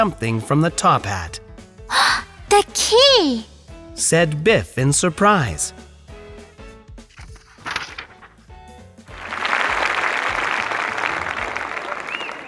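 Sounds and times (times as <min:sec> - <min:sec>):
speech: 0:00.0 - 0:05.8
audience clapping: 0:09.1 - 0:12.4
audience cheering: 0:09.9 - 0:12.4.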